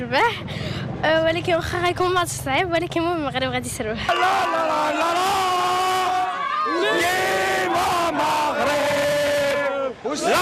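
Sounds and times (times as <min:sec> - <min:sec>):
speech: 0:00.0 - 0:05.4, 0:10.0 - 0:10.3
Moroccan football fans in Rabat cheering and chanting: 0:04.0 - 0:10.3.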